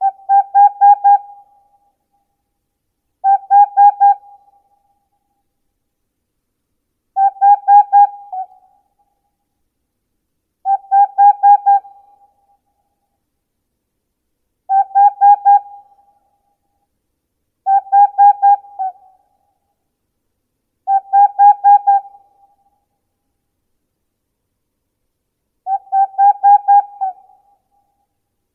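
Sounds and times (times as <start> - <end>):
Aegolius funereus: 0.0 - 1.8, 3.2 - 4.8, 7.2 - 8.9, 10.6 - 12.6, 14.7 - 16.3, 17.6 - 19.5, 20.9 - 22.8, 25.6 - 27.9.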